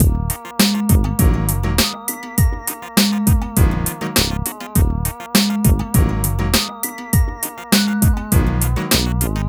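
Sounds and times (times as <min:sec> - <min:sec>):
Latin street music loop: 0:00.0 - 0:09.4.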